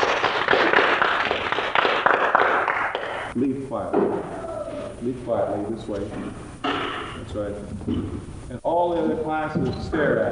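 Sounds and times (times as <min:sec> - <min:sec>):
audience applause: 0:00.0 - 0:03.3
speech: 0:03.4 - 0:04.4, 0:05.0 - 0:10.3.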